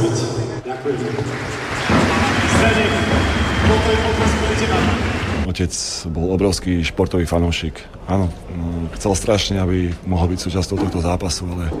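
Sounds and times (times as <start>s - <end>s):
arena crowd applause: 0.7s - 5.5s
speech: 0.7s - 11.7s.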